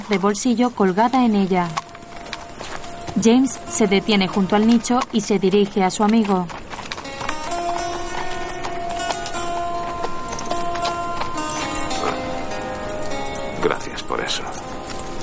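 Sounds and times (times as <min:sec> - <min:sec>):
horses' hooves clip-clopping as riders cross mountains in a western film: 0:00.0 - 0:15.2
speech: 0:00.1 - 0:01.8, 0:03.2 - 0:06.6.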